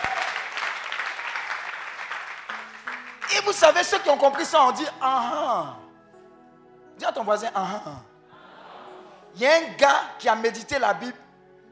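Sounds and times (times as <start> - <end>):
congregation applauding during a French-language church sermon: 0.0 - 4.9
speech: 3.3 - 5.8, 7.0 - 8.1, 9.4 - 11.2.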